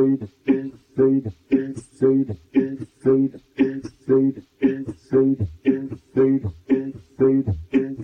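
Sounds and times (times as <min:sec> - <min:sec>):
vocals: 0:00.0 - 0:08.0.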